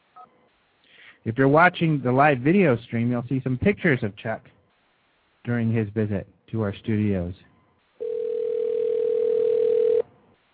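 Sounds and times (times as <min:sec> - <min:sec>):
speech: 0:00.2 - 0:04.6, 0:05.4 - 0:07.5
Chuck's telephone ringing: 0:08.0 - 0:10.1.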